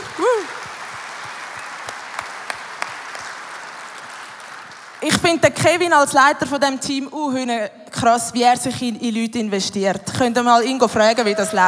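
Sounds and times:
audience applause: 0.0 - 5.1
speech: 5.2 - 11.6.

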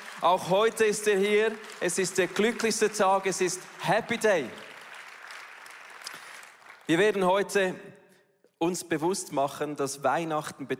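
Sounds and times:
audience applause: 0.0 - 7.2
speech: 0.2 - 4.7, 6.9 - 8.0, 8.6 - 10.7.

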